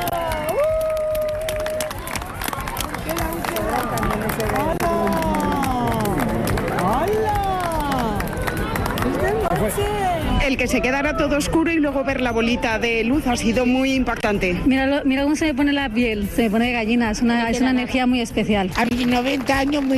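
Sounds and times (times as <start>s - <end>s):
large crowd cheering and whooping while doing a wave: 0.0s - 9.5s
scattered clapping: 0.0s - 10.2s, 18.6s - 19.9s
steady roar of crowd babble: 0.0s - 19.9s
speech: 9.8s - 19.9s.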